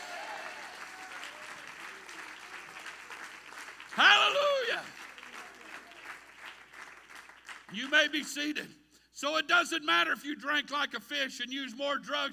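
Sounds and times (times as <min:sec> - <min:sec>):
audience clapping hands: 0:00.0 - 0:08.5
speech: 0:07.7 - 0:12.3.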